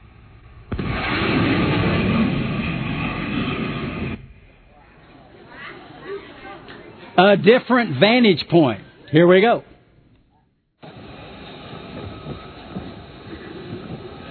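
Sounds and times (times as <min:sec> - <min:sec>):
shock wave boom and jet-like roar of a fast pass over water: 0:00.0 - 0:05.5, 0:10.8 - 0:14.2
speech: 0:07.2 - 0:09.7.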